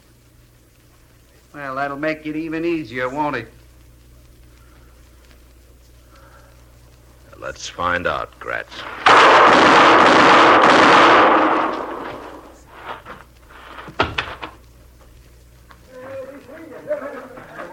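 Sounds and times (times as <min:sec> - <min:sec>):
loud sustained noise: 0:01.3 - 0:17.0
speech: 0:01.5 - 0:03.6, 0:07.4 - 0:11.4
gunshots in a radio drama shootout: 0:08.8 - 0:13.0
laughter: 0:16.0 - 0:17.7.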